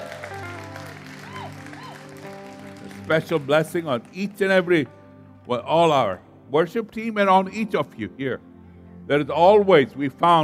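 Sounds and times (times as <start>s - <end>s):
audience clapping applause: 0.0s - 4.7s
speech: 3.1s - 8.5s, 9.1s - 10.4s.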